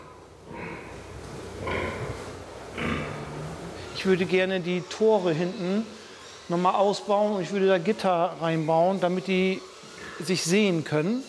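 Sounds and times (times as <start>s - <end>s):
sows grunting: 0.0s - 10.3s
speech: 4.0s - 11.2s.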